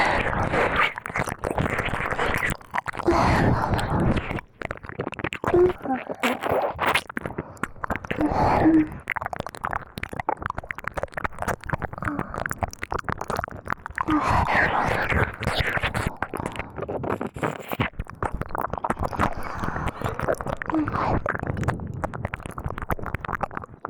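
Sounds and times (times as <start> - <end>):
girlish voice: 0.0 - 1.0, 3.0 - 4.4, 5.4 - 6.8, 8.1 - 9.0, 14.0 - 16.8, 19.2 - 21.3
ASMR ear licking: 0.0 - 23.8.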